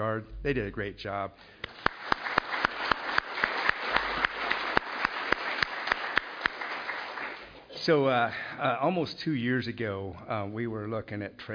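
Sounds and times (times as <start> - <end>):
speech: 0.1 - 1.9, 7.9 - 11.5
round of applause: 1.6 - 7.8.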